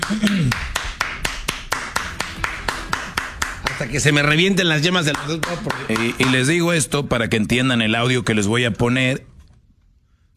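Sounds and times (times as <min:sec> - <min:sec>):
hands clapping applause: 0:00.0 - 0:06.6
speech: 0:03.8 - 0:09.3.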